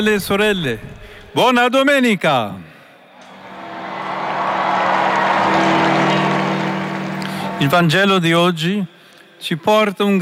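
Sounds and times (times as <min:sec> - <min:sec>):
speech: 0:00.0 - 0:02.6, 0:07.6 - 0:10.2
applause of crowd in Saint Peter's Square: 0:03.2 - 0:08.0
large crowd roaring and cheering in Saint Peter's Square: 0:03.2 - 0:08.0.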